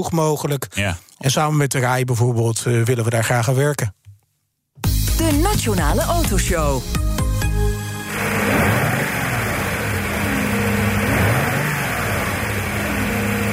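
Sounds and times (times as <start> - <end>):
speech: 0.0 - 4.0, 5.2 - 7.0
Mercedes W107 V8 engine running: 8.0 - 13.5.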